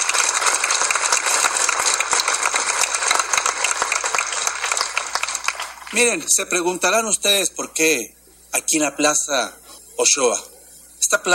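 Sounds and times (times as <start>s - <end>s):
audience applause: 0.0s - 6.3s
speech: 5.9s - 10.5s, 11.1s - 11.3s.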